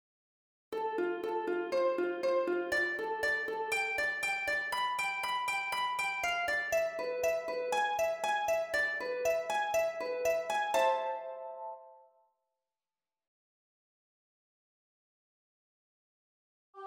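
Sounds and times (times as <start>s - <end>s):
harp: 0.8s - 12.1s.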